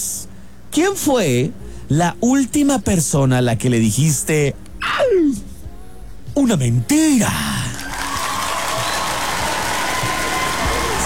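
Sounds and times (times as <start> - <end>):
speech: 0.8 - 4.6, 6.4 - 7.5
applause: 7.6 - 11.0.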